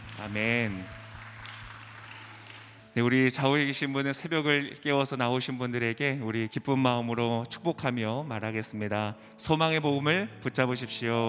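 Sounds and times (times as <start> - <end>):
audience applauding: 0.0 - 3.0
speech: 0.2 - 1.0, 3.0 - 11.2.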